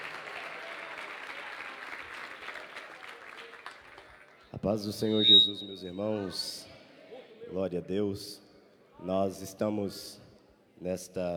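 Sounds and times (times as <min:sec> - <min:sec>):
audience clapping: 0:00.0 - 0:04.5
speech: 0:04.6 - 0:06.7, 0:07.5 - 0:08.4, 0:09.0 - 0:10.2, 0:10.8 - 0:11.3.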